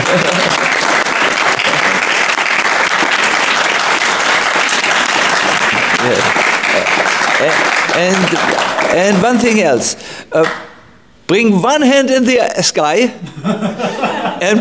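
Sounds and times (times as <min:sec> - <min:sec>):
laughter: 0:00.0 - 0:00.8, 0:01.5 - 0:02.1, 0:13.2 - 0:14.5
large audience applause: 0:00.0 - 0:09.6
speech: 0:07.4 - 0:10.7, 0:11.3 - 0:14.5.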